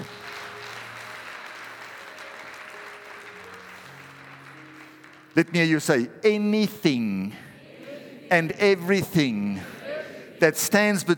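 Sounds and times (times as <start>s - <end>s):
audience applause: 0.0s - 5.8s
speech: 5.4s - 7.5s, 8.3s - 9.8s, 10.4s - 11.1s.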